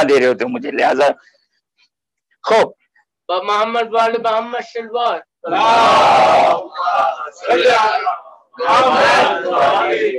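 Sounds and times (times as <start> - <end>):
speech: 0.0 - 1.4, 2.4 - 10.1
crowd at a religious gathering chanting salawat and religious slogans: 5.5 - 10.1.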